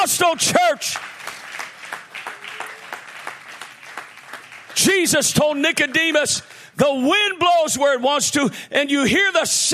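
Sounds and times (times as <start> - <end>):
audience clapping: 0.2 - 6.6
speech: 0.3 - 1.0, 5.0 - 9.7.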